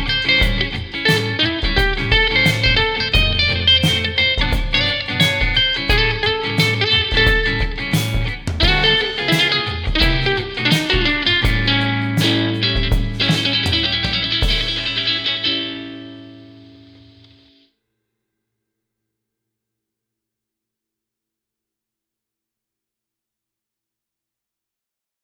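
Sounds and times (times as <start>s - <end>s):
bluesy music: 0.0s - 17.4s.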